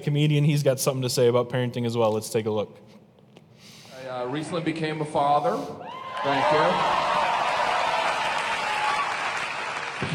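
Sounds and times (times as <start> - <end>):
speech: 0.0 - 3.0, 4.2 - 7.1
audience applause: 6.0 - 10.1.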